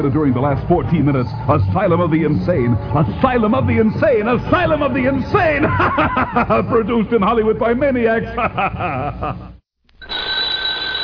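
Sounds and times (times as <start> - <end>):
speech: 0.0 - 9.5
laughter: 5.4 - 7.1, 8.2 - 9.6
doorbell ringing with a high-pitched buzzing ring: 10.0 - 11.0.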